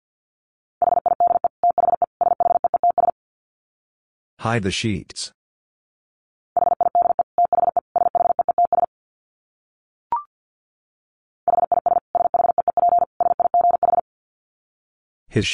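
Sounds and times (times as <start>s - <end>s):
rapid Morse code dits at 50 wpm: 0.8s - 3.1s, 6.6s - 8.9s, 11.5s - 14.0s
speech: 4.4s - 5.4s.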